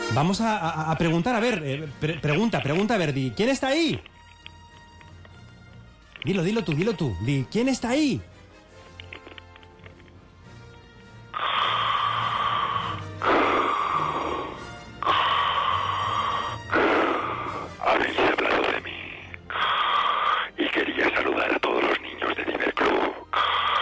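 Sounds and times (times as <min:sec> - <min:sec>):
speech: 0:00.1 - 0:04.1, 0:06.2 - 0:08.4
heavy wheezing breathing: 0:11.3 - 0:21.1, 0:22.1 - 0:23.7.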